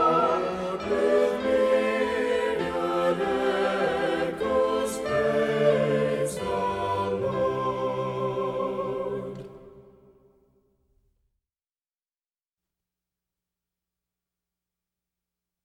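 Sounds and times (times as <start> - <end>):
music: 0.0 - 11.3.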